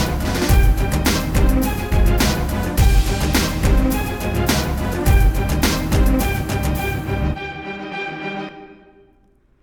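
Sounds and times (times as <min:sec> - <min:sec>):
blockbuster drums: 0:00.0 - 0:06.8.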